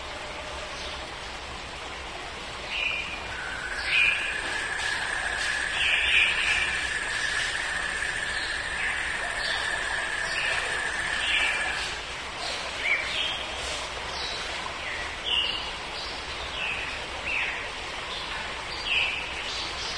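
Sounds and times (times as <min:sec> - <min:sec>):
jungle ambience: 0:00.0 - 0:19.9.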